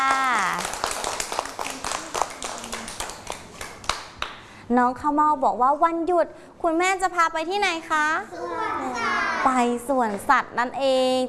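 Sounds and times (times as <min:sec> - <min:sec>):
scattered clapping from a small group: 0:00.0 - 0:04.5
speech: 0:04.7 - 0:11.2.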